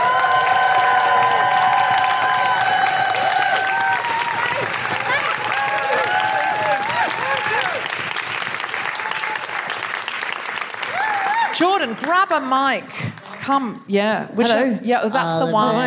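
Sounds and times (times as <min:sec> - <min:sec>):
audience cheering: 0:00.0 - 0:12.1
audience applause: 0:00.0 - 0:13.5
speech: 0:11.6 - 0:15.8.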